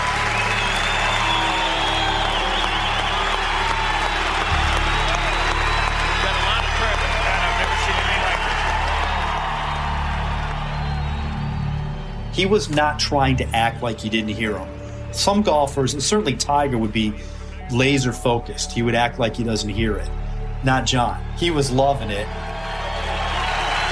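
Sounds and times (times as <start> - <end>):
crowd applause and cheering at a golf course: 0.0 - 15.1, 20.2 - 23.8
speech: 12.4 - 22.5.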